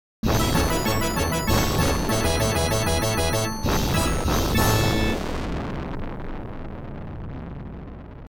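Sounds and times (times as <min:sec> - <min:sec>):
big points collected sound effect: 0:00.2 - 0:05.2.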